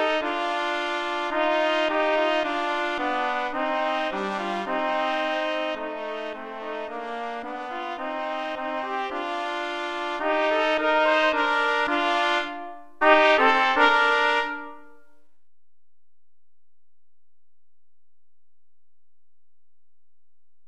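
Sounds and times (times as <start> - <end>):
trumpet duet: 0.0 - 15.2.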